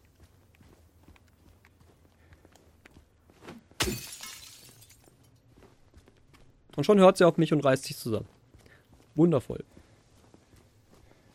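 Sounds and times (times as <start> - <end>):
steel pipe smashing a car window: 3.8 - 5.0
speech: 6.8 - 8.4, 9.2 - 9.8.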